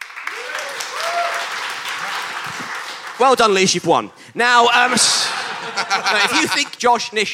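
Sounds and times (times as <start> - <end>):
people cheering: 0.0 - 3.1, 5.2 - 6.8
audience applause: 0.0 - 3.8
speech: 3.2 - 7.3
laughter: 4.9 - 7.1.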